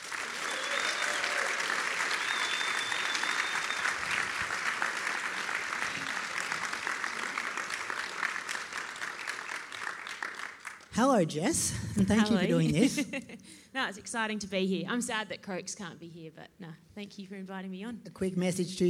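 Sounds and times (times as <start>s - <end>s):
live audience applause and cheering: 0.0s - 11.0s
speech: 11.0s - 18.8s.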